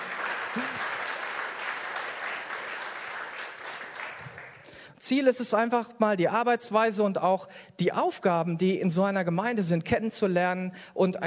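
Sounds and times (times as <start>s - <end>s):
audience clapping: 0.0s - 4.8s
speech: 5.1s - 11.2s.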